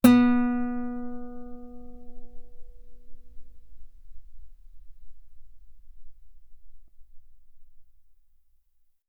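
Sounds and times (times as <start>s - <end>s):
guitar B3 note on B string played fortissimo: 0.0s - 5.8s.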